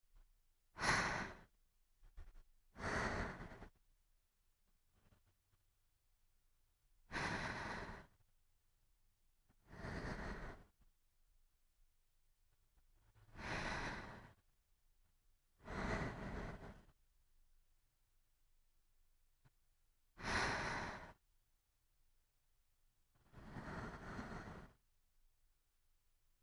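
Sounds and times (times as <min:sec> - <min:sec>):
sleeping breath: 0:00.8 - 0:01.5, 0:02.8 - 0:03.8, 0:07.1 - 0:08.2, 0:09.5 - 0:10.8, 0:13.2 - 0:14.4, 0:15.6 - 0:17.0, 0:20.2 - 0:21.2, 0:23.2 - 0:24.8.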